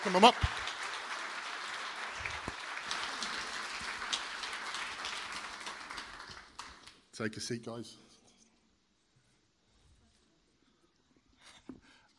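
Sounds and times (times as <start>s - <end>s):
speech: 0.0s - 0.7s, 7.2s - 8.1s
audience applause: 0.0s - 7.0s.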